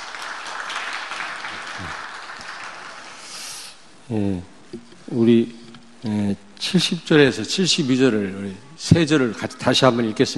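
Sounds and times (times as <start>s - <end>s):
applause: 0.0s - 3.4s
speech: 4.1s - 10.3s.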